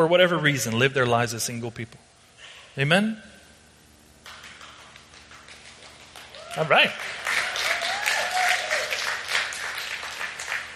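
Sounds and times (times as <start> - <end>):
speech: 0.0 - 2.1, 2.8 - 3.3, 6.6 - 7.2
clapping: 4.2 - 10.7
high vocal whoop: 6.4 - 9.0.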